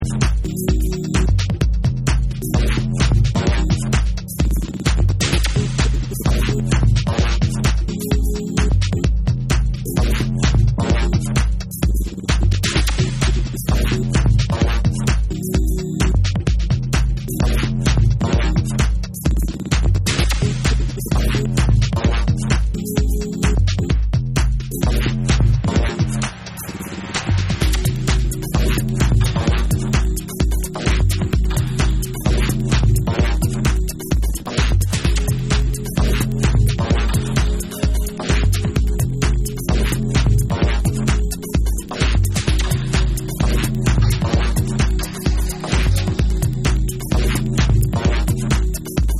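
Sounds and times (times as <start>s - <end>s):
electro music: 0.0s - 49.1s.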